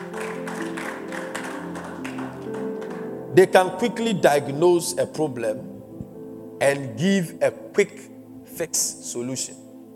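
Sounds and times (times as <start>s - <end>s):
audience clapping: 0.0s - 3.2s
sustained music with held tones: 0.0s - 9.9s
speech: 3.4s - 5.7s, 6.6s - 9.6s.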